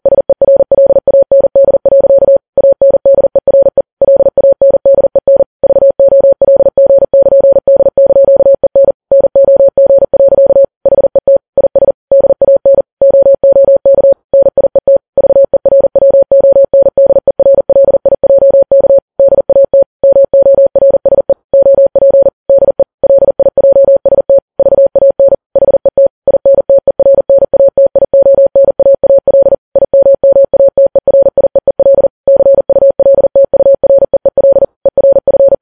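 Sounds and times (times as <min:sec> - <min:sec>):
morse code beeps: 0:00.0 - 0:35.6.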